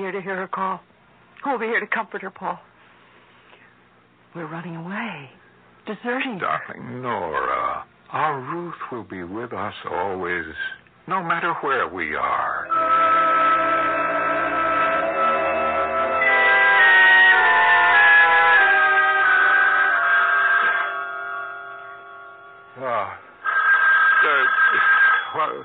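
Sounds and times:
speech: 0.0s - 2.7s, 4.4s - 13.0s, 25.4s - 25.6s
sustained tonal music: 12.6s - 23.0s
telephone bell ringing: 12.7s - 22.8s, 23.4s - 25.6s.

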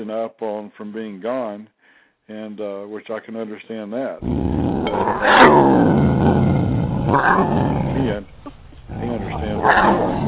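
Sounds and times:
speech: 0.0s - 8.3s, 9.4s - 10.2s
cat growling and snarling: 4.2s - 10.2s.

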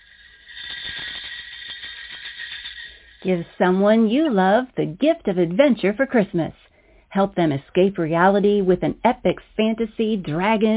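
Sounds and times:
sleigh bells jingling: 0.0s - 4.5s
speech: 3.2s - 10.7s.

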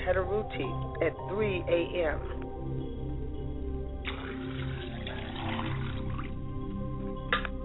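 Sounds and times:
speech: 0.0s - 3.0s
liquid poured as a libation: 4.0s - 6.6s
sharp drips or splashes: 4.0s - 7.5s.

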